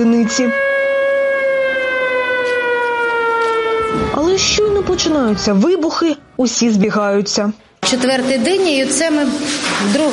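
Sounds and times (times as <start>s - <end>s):
speech: 0.0s - 0.6s, 3.9s - 10.1s
air raid siren: 0.0s - 6.9s.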